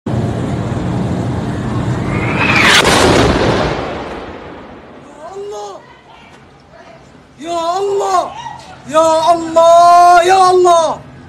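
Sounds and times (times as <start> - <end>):
explosions at a hospital in Gaza City: 1.2 - 5.4
speech: 7.4 - 11.0.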